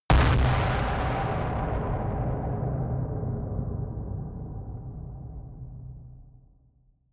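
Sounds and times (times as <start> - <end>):
distorted explosions: 0.1 - 5.8.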